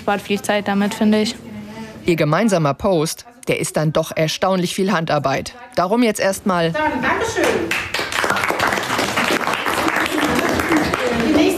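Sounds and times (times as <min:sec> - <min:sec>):
speech: 0:00.0 - 0:07.9
applause: 0:07.4 - 0:11.5.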